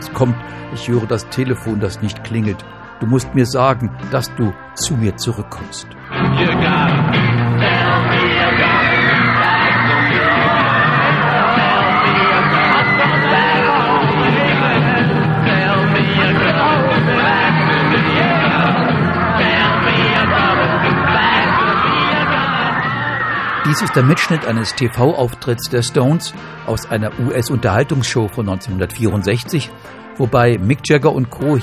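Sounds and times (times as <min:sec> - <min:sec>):
speech: 0:00.2 - 0:07.4, 0:23.7 - 0:31.6
mostly female fans screaming: 0:06.2 - 0:27.8.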